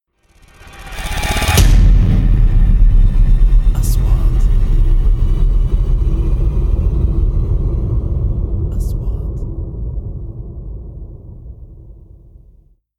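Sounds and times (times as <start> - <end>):
3D trailer sound effects: 0.1 - 12.6.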